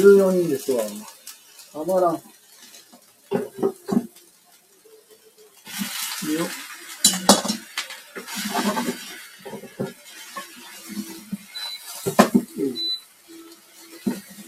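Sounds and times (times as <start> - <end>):
speech: 0.0 - 2.4, 6.3 - 7.3
pots and pans handled while cooking: 2.6 - 4.2, 5.6 - 14.4.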